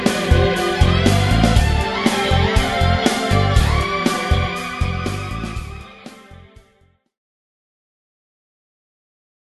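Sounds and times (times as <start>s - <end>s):
erhu solo: 0.0s - 6.7s.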